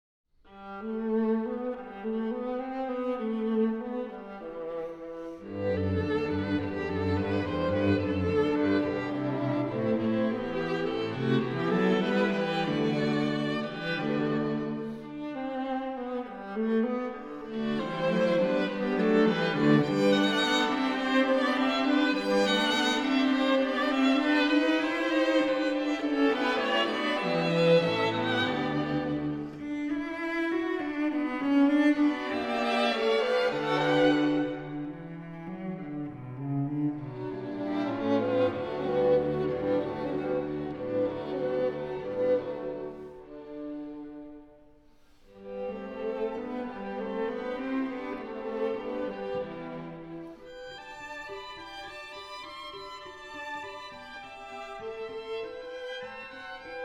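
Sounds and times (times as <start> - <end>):
string quartet playing in G: 0.6 - 56.8.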